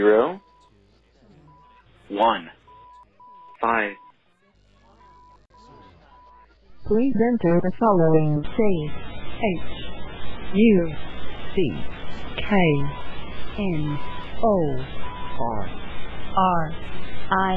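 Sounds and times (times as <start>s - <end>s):
long-distance Hellschreiber shortwave radio signal: 0.0s - 17.5s.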